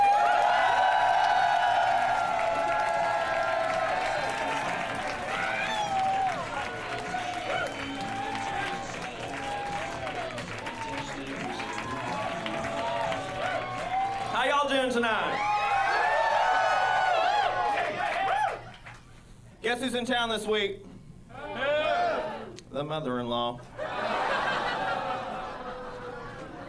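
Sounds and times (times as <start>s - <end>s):
comedy-club audience applause welcoming a performer: 0.0s - 14.6s, 15.3s - 19.0s
comedy-club crowd noise: 0.0s - 18.6s, 23.6s - 26.6s
speech: 19.8s - 20.9s, 22.8s - 23.7s
laughter: 23.7s - 26.6s.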